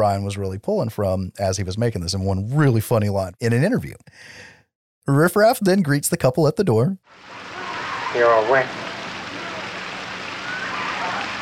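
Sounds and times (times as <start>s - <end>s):
speech: 0.0s - 7.4s, 8.1s - 8.8s
rain: 7.1s - 11.3s.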